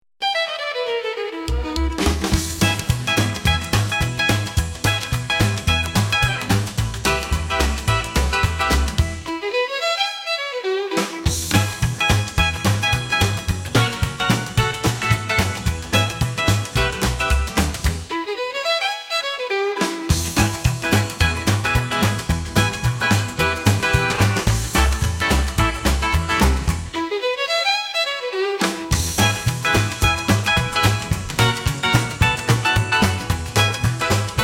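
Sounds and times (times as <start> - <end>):
rockabilly music: 0.2 - 34.4.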